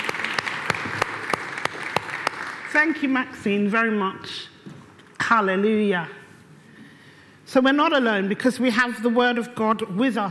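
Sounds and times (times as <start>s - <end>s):
audience applause: 0.0s - 2.7s
speech: 2.8s - 4.5s, 5.3s - 6.2s, 7.5s - 10.2s.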